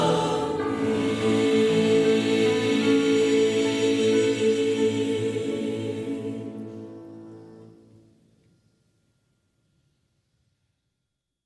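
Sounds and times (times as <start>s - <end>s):
Easter choir singing: 0.0s - 7.8s.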